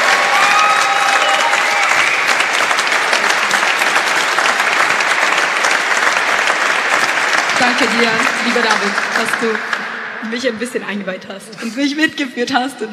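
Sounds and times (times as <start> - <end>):
audience applause: 0.0 - 10.2
speech: 7.6 - 12.9.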